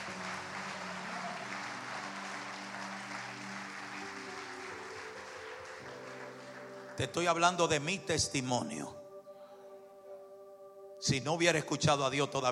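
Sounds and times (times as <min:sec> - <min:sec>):
audience applauding: 0:00.0 - 0:08.0
speech: 0:07.0 - 0:09.0, 0:11.0 - 0:12.4.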